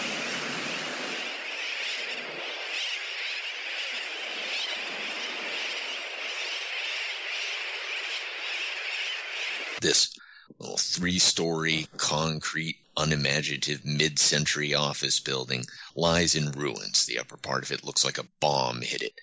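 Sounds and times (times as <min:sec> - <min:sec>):
distant seagulls: 0:00.0 - 0:09.8
ocean breakers rolling in: 0:00.0 - 0:09.8
speech: 0:09.8 - 0:19.2.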